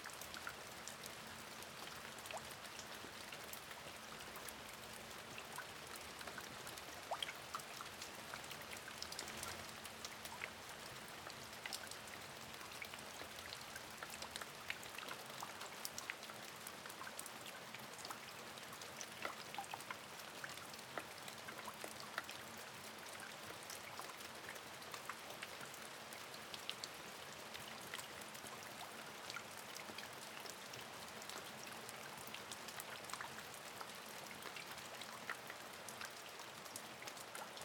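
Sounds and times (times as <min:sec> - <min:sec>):
light rain dripping into a puddle: 0:00.0 - 0:37.6.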